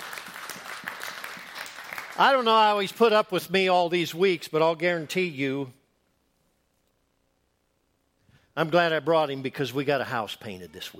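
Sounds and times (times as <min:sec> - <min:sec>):
audience applause: 0:00.0 - 0:02.4
speech: 0:02.2 - 0:05.8, 0:08.6 - 0:10.9.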